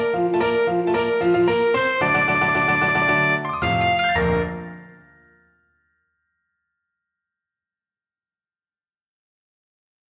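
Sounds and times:
alto saxophone: 0.1 - 4.8.

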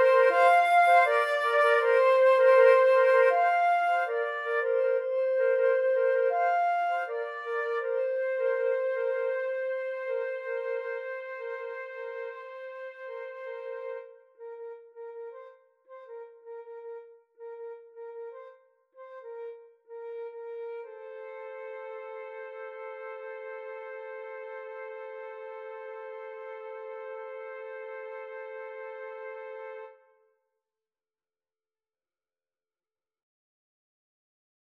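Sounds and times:
flute trio playing: 0.0 - 14.1, 21.0 - 29.9.

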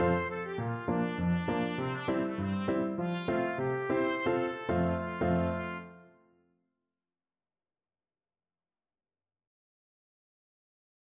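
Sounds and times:
trumpet: 0.0 - 6.3.

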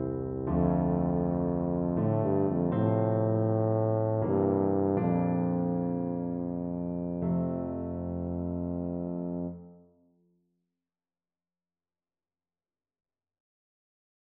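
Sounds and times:
tuba melody: 0.0 - 9.7.

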